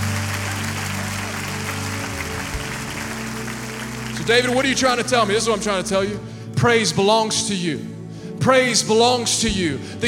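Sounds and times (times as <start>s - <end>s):
audience applause: 0.0s - 5.2s
speech: 4.3s - 10.0s.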